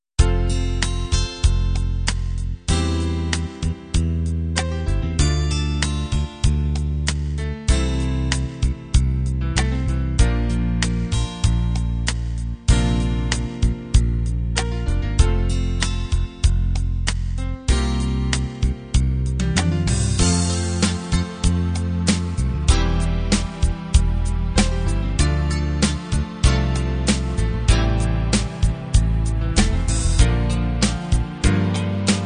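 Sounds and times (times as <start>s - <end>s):
rock ballad: 0.3s - 32.2s.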